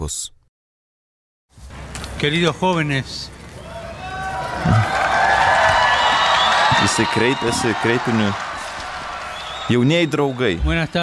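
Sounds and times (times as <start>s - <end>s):
speech: 0.0s - 0.4s, 2.2s - 3.4s, 4.6s - 5.0s, 6.8s - 8.5s, 9.7s - 11.0s
crowd at a World Youth Day Mass clapping and cheering a greeting: 3.6s - 11.0s.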